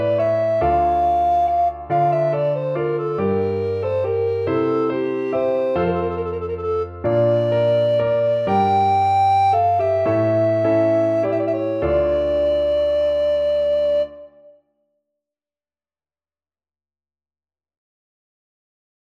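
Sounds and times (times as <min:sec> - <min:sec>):
fast recorder division on a ground bass: 0:00.0 - 0:14.5.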